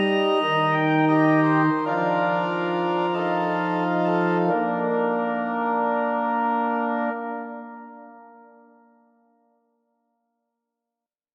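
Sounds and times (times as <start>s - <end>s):
symphonic music: 0.0s - 8.8s.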